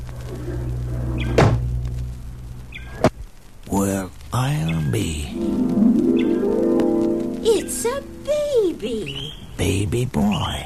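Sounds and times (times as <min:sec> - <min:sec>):
steady low hum: 0:00.0 - 0:09.6
sharp thuds from a toy rocket ship being forced open in a radio drama: 0:01.2 - 0:02.0
speech: 0:03.7 - 0:06.2, 0:07.4 - 0:10.6.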